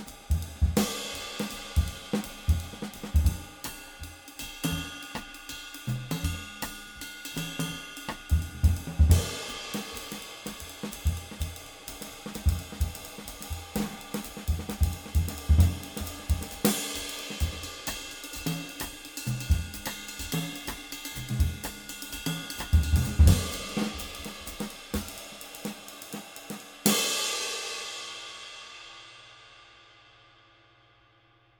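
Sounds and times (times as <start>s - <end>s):
22-inch K Zildjian Istanbul cymbal: 0.0s - 31.4s.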